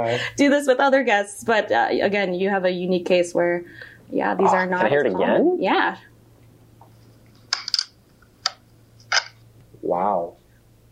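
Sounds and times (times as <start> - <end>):
speech: 0.0 - 6.1, 9.8 - 10.4
camera memory card door popping open: 7.5 - 7.9, 8.5 - 9.4.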